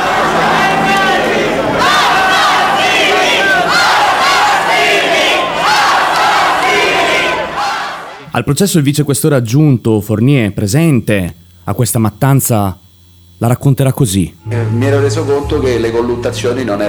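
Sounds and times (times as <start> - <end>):
crowd screaming in reaction: 0.0 - 8.3
speech: 8.4 - 16.8.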